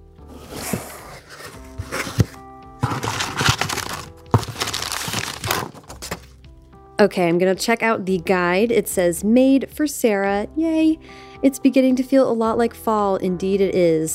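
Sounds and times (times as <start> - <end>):
cardboard and paper crinkling as a subscription box is opened: 0.3 - 6.3
speech: 7.0 - 14.1.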